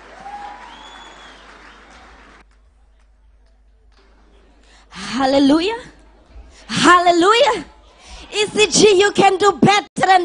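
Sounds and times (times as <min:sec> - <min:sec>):
church audience clapping: 0:00.0 - 0:04.4
speech: 0:05.2 - 0:05.9, 0:06.9 - 0:07.7, 0:08.3 - 0:10.2.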